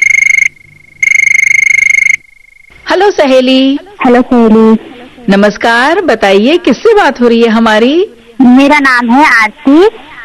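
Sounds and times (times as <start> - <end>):
telephone ringing: 0.0 - 2.8
speech: 2.9 - 10.1.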